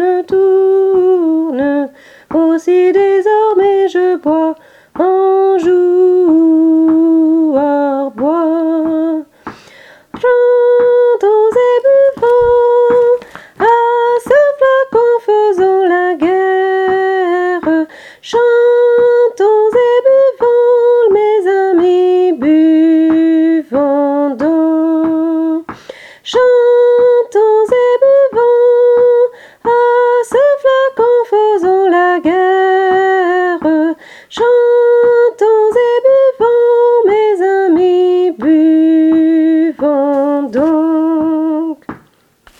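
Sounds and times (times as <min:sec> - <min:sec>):
soprano singing: 0:00.0 - 0:09.3, 0:10.1 - 0:42.0.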